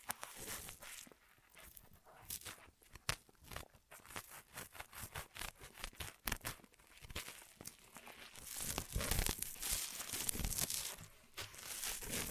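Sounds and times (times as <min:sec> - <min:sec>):
crinkling and rustling ear massage triggers: 0:00.0 - 0:12.2.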